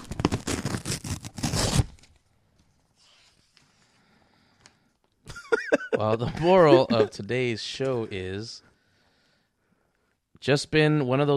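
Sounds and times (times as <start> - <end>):
something torn open by hand, ripping and crackling: 0.0 - 2.2
laughter: 5.3 - 7.2
speech: 6.0 - 8.7, 10.4 - 11.3.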